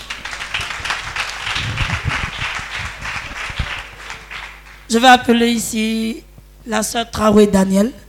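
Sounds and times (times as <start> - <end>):
church congregation applauding in praise of Jesus: 0.0 - 5.0
low rumbling undertone: 0.8 - 3.8
speech: 4.9 - 8.0.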